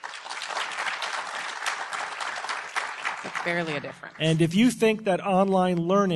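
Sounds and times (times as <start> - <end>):
audience applause: 0.0 - 4.6
speech: 3.4 - 6.1.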